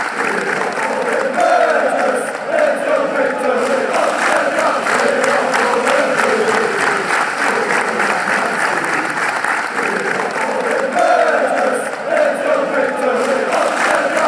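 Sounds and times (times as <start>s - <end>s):
chanting: 0.0s - 14.2s.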